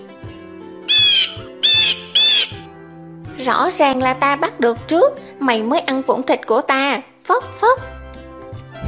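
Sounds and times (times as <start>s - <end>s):
bird cawing with crow-like squawks: 0.9s - 2.7s
speech: 3.5s - 7.9s.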